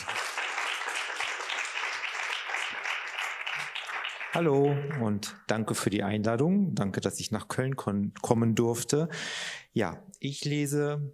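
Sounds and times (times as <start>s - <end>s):
audience applause: 0.0s - 5.1s
speech: 4.4s - 11.1s.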